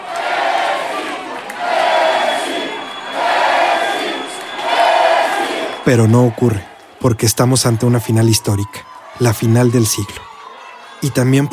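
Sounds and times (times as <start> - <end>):
huge stadium crowd roaring and shouting after a goal: 0.0 - 11.5
speech: 5.9 - 10.3, 11.0 - 11.5.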